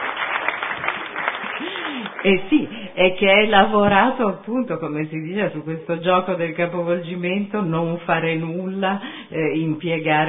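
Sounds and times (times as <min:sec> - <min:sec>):
applause: 0:00.0 - 0:02.8
speech: 0:02.2 - 0:10.2.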